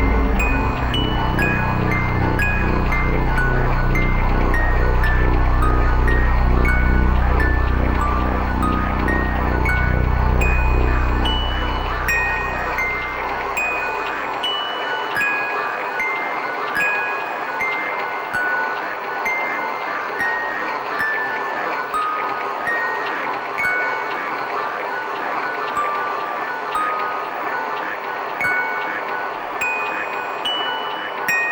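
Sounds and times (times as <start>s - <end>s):
music box: 0.0s - 31.4s.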